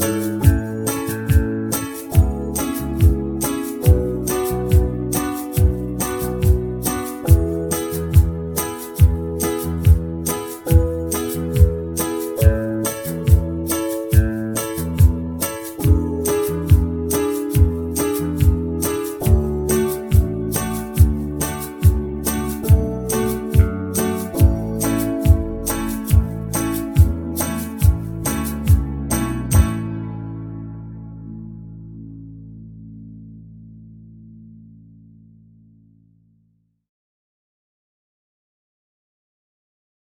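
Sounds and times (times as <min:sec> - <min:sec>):
banjo backing track: 0:00.0 - 0:30.2.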